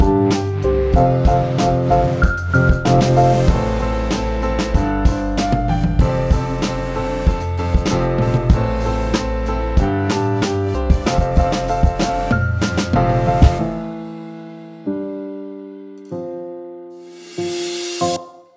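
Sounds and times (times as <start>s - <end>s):
drum kit: 0.0s - 13.9s.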